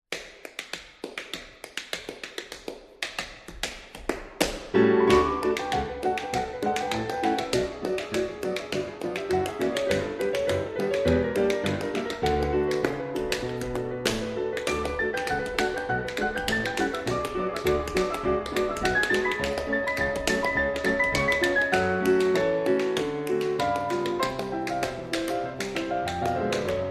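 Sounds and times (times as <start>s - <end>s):
tap dancing: 0.1s - 26.8s.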